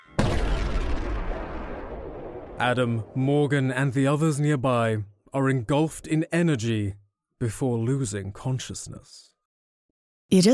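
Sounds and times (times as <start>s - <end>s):
large explosion as a glowing crystal shatters: 0.2s - 4.2s
speech: 2.6s - 9.3s, 10.3s - 10.5s.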